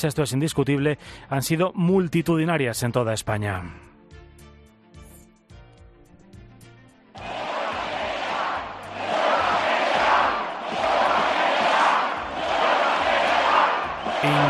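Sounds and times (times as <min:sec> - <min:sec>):
speech: 0:00.0 - 0:03.9
protest crowd chanting general strike: 0:07.2 - 0:14.4.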